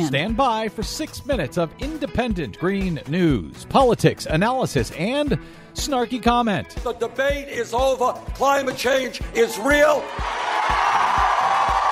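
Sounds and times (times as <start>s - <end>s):
speech: 0.0s - 11.0s
crowd cheering: 9.6s - 11.8s.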